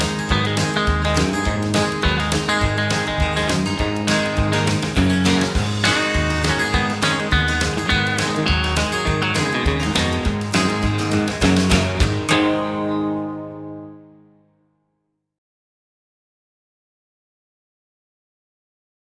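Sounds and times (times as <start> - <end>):
chicken picking guitar: 0.0 - 14.4.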